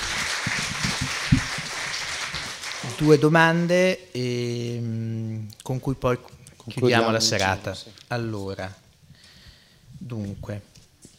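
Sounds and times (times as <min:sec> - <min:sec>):
audience clapping: 0:00.0 - 0:03.3
speech: 0:03.0 - 0:05.0, 0:05.6 - 0:08.8, 0:10.0 - 0:10.7.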